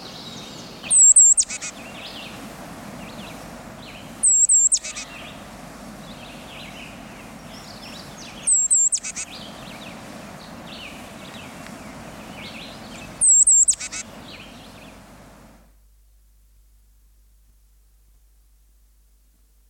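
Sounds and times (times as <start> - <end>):
songbirds singing: 0.0 - 15.2
tufted titmouse singing: 0.8 - 1.7, 4.2 - 5.3, 6.6 - 9.8, 12.4 - 14.6.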